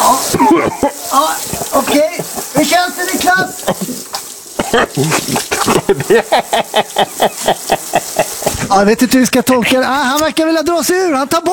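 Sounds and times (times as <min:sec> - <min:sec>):
water poured over face during waterboarding: 0:00.0 - 0:10.3
laughter: 0:00.4 - 0:02.7, 0:04.8 - 0:08.6
speech: 0:00.4 - 0:03.9, 0:04.7 - 0:11.5.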